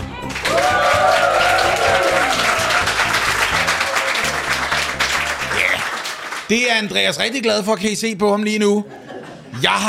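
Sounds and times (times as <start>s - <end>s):
small live audience applause: 0.2s - 6.5s
speech: 6.5s - 9.0s, 9.6s - 9.8s.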